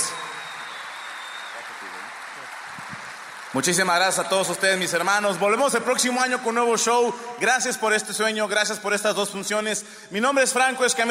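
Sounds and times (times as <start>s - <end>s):
audience applause: 0.0s - 6.1s
speech: 3.5s - 11.0s.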